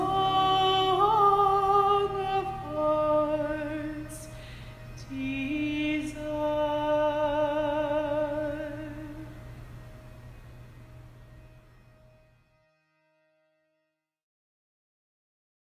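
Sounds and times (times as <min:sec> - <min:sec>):
woman singing an Irish song a cappella in eerie layered vocals: 0:00.0 - 0:04.4, 0:05.0 - 0:09.4.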